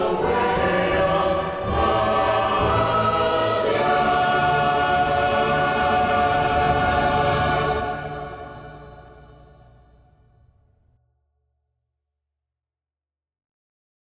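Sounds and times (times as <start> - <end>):
musical accompaniment: 0.0 - 10.1.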